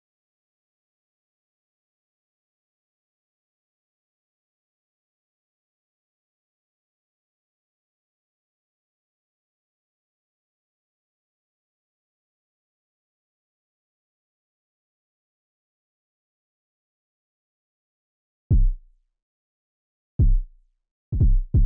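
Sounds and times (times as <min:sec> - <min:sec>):
kick drum: 0:18.5 - 0:18.9, 0:20.2 - 0:20.5, 0:21.1 - 0:21.6.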